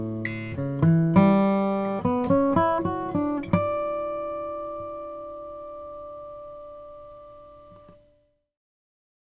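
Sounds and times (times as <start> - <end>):
spalted pearwood guitar: 0.0 - 8.2.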